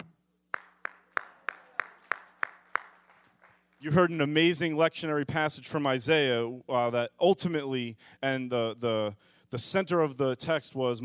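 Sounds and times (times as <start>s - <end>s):
audience clapping: 0.5s - 3.8s
speech: 3.8s - 11.0s.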